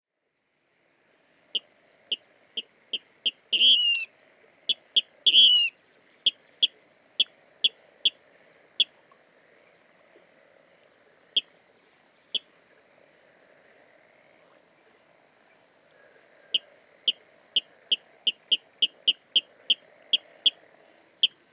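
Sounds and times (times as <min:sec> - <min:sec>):
water rail sharp kip calls: 0:01.6 - 0:04.1, 0:04.7 - 0:08.2, 0:16.5 - 0:20.6.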